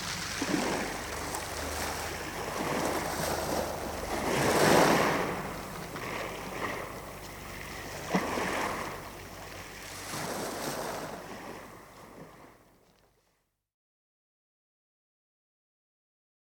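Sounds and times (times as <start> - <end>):
waves: 0.0 - 13.1.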